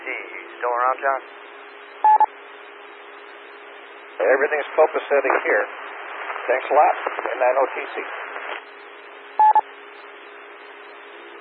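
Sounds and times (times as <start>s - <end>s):
speech: 0.6s - 1.5s, 4.2s - 5.8s, 6.4s - 8.2s
telephone touch-tone beeps on a radio channel: 2.0s - 2.3s, 9.4s - 9.6s.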